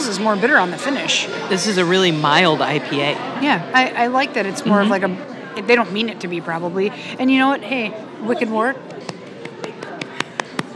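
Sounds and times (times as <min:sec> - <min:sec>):
low murmur of voices: 0:00.0 - 0:10.7
speech: 0:00.1 - 0:08.9
sharp hand claps: 0:08.8 - 0:10.7.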